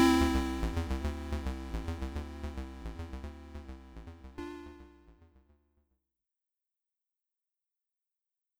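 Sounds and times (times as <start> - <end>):
SID chip stereo background music: 0.0 - 5.3.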